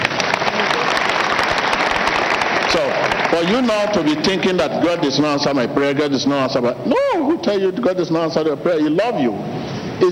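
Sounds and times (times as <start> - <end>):
crowd clapping: 0.0 - 4.7
speech: 2.7 - 10.1.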